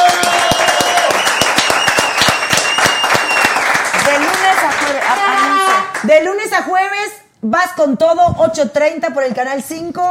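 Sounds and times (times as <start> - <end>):
studio audience applause: 0.0 - 6.0
speech: 6.0 - 10.0.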